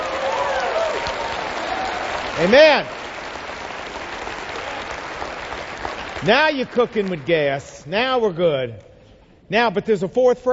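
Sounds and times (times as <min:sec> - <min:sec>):
audience applause: 0:00.0 - 0:07.4
speech: 0:02.4 - 0:03.0, 0:06.2 - 0:08.9, 0:09.5 - 0:10.5.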